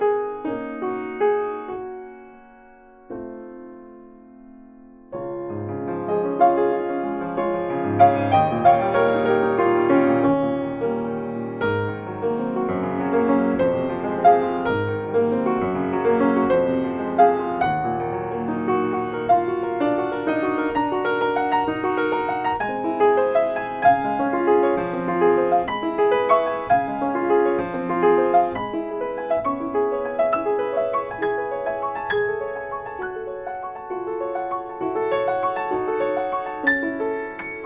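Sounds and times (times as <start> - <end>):
piano: 0.0 - 37.6.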